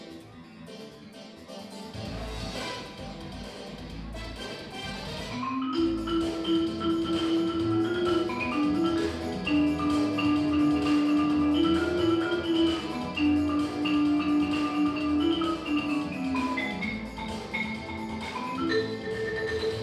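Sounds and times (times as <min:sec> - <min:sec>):
marimba: 0:05.3 - 0:19.8.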